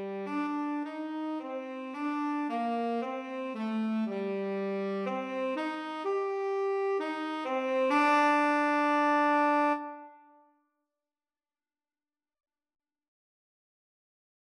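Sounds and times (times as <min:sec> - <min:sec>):
tenor saxophone duet: 0:00.0 - 0:10.4.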